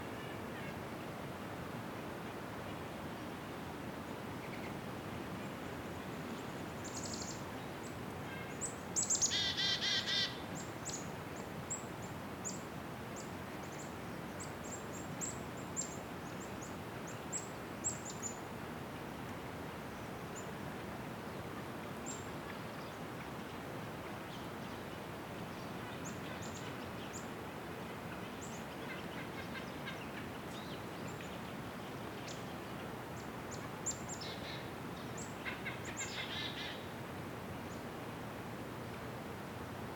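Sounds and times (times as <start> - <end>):
slight breeze in a winter forest in the North Laurentian Woods: 0.0 - 39.9
crow in a winter forest in the North Laurentian Woods: 9.2 - 10.4.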